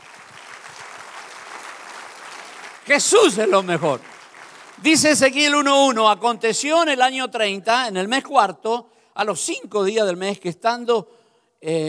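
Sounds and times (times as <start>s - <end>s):
church congregation applauding during a service: 0.0s - 6.4s
speech: 2.9s - 4.1s, 4.8s - 11.8s.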